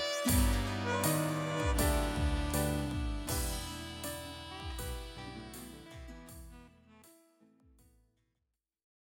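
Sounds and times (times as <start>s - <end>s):
open strings played: 0.0s - 7.0s.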